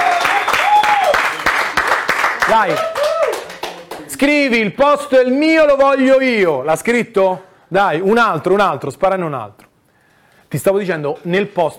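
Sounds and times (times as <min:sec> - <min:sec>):
audience applause: 0:00.0 - 0:04.1
speech: 0:02.5 - 0:02.9, 0:04.2 - 0:09.6, 0:10.5 - 0:11.7.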